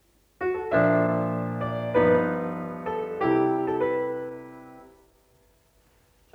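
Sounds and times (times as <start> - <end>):
piano music: 0.4 - 5.1.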